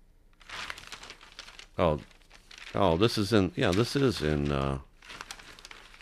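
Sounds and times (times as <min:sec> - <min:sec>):
Times Herald and Sunday Times newspaper pages rustling and crinkling: 0:00.4 - 0:06.0
person talking: 0:01.8 - 0:02.1, 0:02.7 - 0:04.9.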